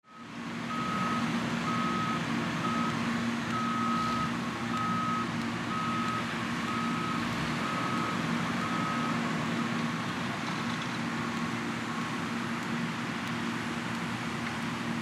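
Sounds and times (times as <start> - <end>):
construction noise: 0.2 - 15.0.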